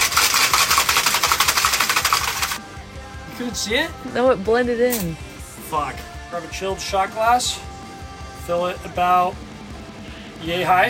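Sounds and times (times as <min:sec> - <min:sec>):
cocktail shaker being shaken: 0:00.0 - 0:02.6
speech: 0:03.4 - 0:07.7, 0:08.5 - 0:09.4, 0:10.4 - 0:10.8.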